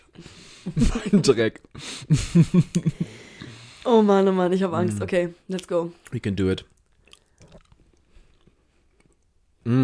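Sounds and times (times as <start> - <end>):
speech: 0.2 - 3.2, 3.8 - 6.7, 9.6 - 9.8
wet chewing of a blueberry-flavoured snack: 5.6 - 9.4.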